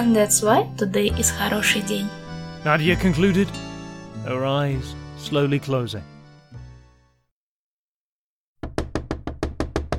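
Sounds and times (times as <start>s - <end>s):
speech: 0.0s - 6.1s
knocking on a door: 8.6s - 9.9s.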